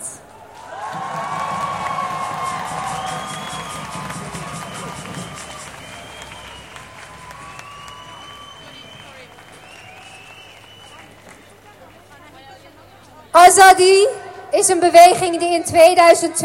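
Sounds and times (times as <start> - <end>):
audience cheers and whoops: 0.6 - 10.9
audience clapping: 0.7 - 11.6
speech: 13.6 - 16.4.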